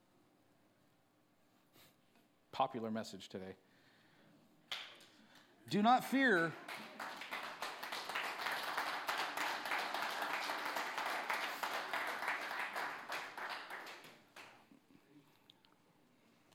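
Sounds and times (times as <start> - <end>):
speech: 2.6 - 3.7, 5.7 - 6.6
audience applause: 5.7 - 14.6.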